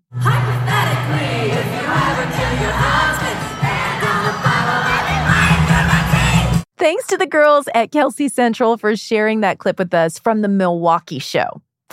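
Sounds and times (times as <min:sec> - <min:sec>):
concert crowd cheering wildly: 0:00.4 - 0:06.6
speech: 0:06.9 - 0:11.6.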